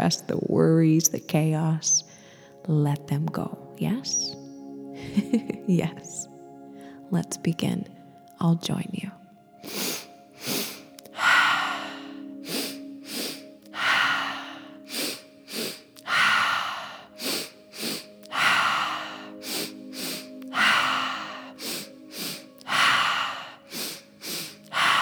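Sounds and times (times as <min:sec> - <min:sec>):
speech: 0:00.0 - 0:04.4, 0:05.0 - 0:06.3, 0:07.1 - 0:09.9
soft steady sustained tone: 0:01.5 - 0:24.9
deep breathing during a guided breathing exercise: 0:02.1 - 0:02.6, 0:06.6 - 0:07.1, 0:09.6 - 0:24.9.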